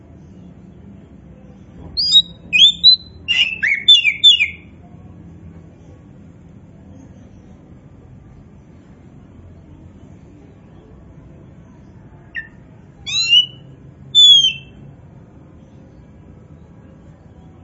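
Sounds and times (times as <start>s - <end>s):
Oriental magpie-robin song: 1.9s - 4.8s, 12.3s - 14.8s.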